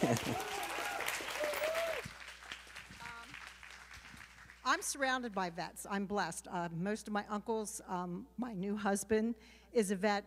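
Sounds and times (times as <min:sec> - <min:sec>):
speech: 0:00.0 - 0:00.6, 0:04.8 - 0:10.2
audience applause: 0:00.0 - 0:04.6.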